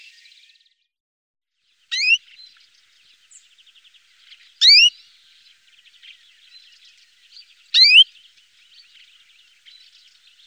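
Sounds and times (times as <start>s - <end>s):
European greenfinch singing trills and wheezy buzzing notes: 2.0s - 2.2s, 4.6s - 4.9s, 7.8s - 8.0s.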